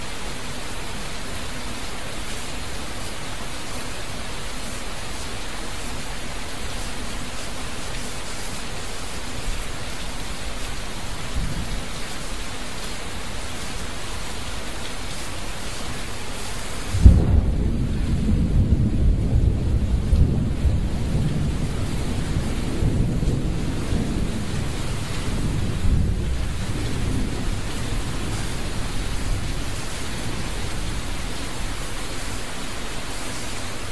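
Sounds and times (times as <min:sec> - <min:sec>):
rain in 3D sound: 0:00.0 - 0:33.9
lightning in 3D sound: 0:16.8 - 0:32.0.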